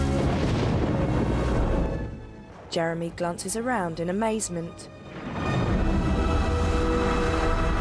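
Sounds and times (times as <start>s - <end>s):
thunder boom: 0.1s - 2.7s, 5.0s - 7.7s
speech: 2.7s - 5.0s.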